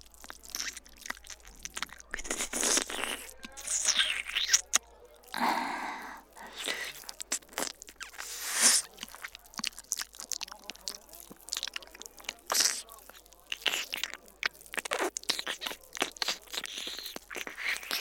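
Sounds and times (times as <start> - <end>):
wet lips sucking noisily on an ear, ASMR: 0.0 - 17.9.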